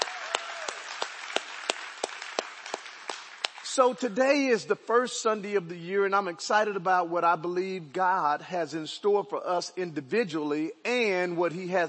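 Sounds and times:
audience applause: 0:00.0 - 0:03.7
speech: 0:03.8 - 0:11.8.

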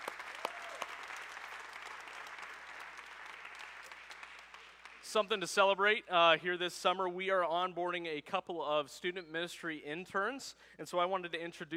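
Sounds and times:
audience applause: 0:00.0 - 0:05.3
speech: 0:05.1 - 0:11.7.

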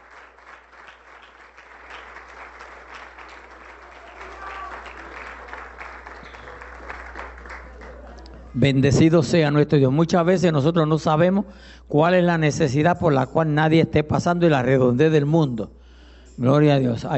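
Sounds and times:
audience clapping: 0:00.0 - 0:08.5
speech: 0:08.6 - 0:15.8, 0:16.4 - 0:17.1.

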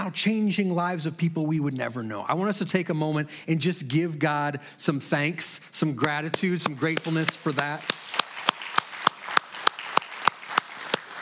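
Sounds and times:
speech: 0:00.0 - 0:08.2
audience applause: 0:06.8 - 0:11.2.

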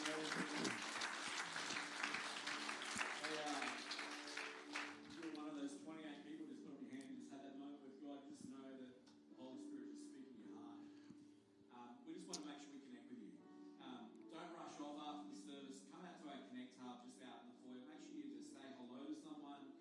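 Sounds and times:
audience clapping during a church service: 0:00.0 - 0:05.5
music: 0:00.0 - 0:19.7.

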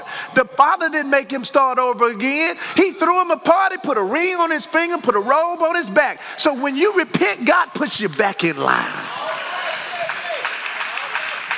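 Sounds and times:
preacher speaking: 0:00.0 - 0:09.2
speech: 0:00.3 - 0:09.1
church congregation clapping during a sermon: 0:07.7 - 0:11.5.

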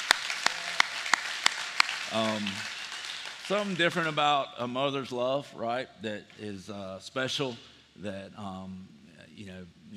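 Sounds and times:
audience clapping: 0:00.0 - 0:04.4
speech: 0:02.1 - 0:02.8, 0:03.5 - 0:09.9.

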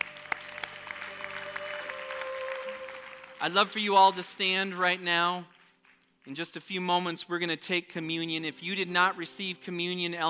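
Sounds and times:
audience clapping hands: 0:00.0 - 0:06.7
speech: 0:03.4 - 0:05.6, 0:06.3 - 0:10.2.

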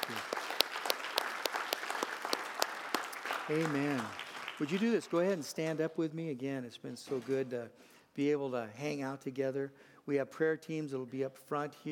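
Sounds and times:
church congregation applauding at the close of a service: 0:00.0 - 0:05.4
speech: 0:03.5 - 0:11.9.

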